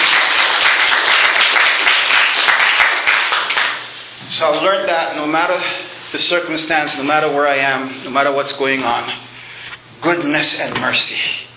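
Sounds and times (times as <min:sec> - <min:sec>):
audience round of applause: 0:00.0 - 0:03.9
speech: 0:04.4 - 0:09.3, 0:10.0 - 0:11.4.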